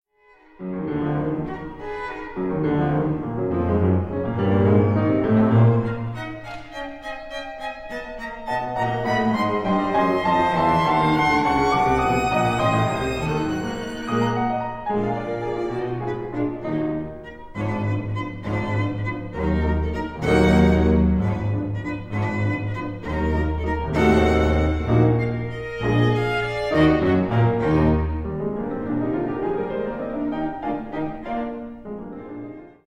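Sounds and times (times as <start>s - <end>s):
string chamber quintet: 0.2s - 32.8s.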